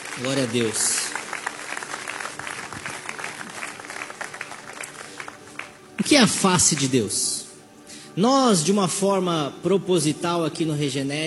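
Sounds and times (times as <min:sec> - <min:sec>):
audience clapping hands: 0:00.0 - 0:07.1
speech: 0:00.2 - 0:01.0, 0:06.0 - 0:07.4, 0:08.2 - 0:11.2.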